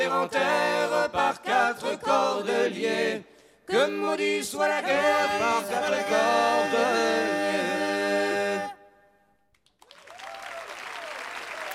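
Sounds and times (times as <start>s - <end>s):
speech: 0.2s - 8.7s
concert audience applause: 9.6s - 11.7s.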